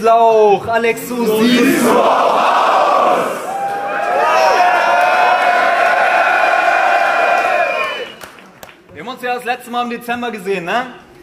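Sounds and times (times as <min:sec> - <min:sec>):
speech: 0:00.0 - 0:03.4, 0:09.2 - 0:11.0
audience cheering: 0:01.5 - 0:08.4
audience applause: 0:03.0 - 0:08.8.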